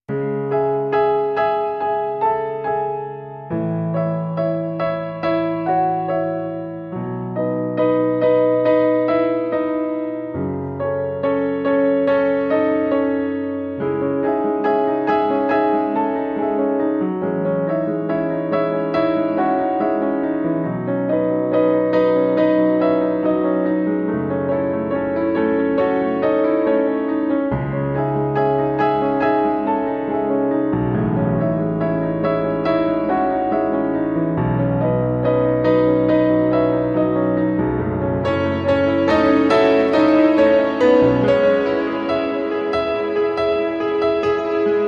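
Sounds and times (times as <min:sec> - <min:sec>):
solo piano: 0:00.0 - 0:44.8.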